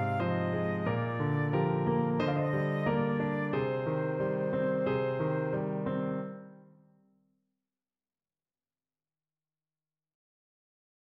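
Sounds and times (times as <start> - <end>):
flute melody: 0.0 - 6.5.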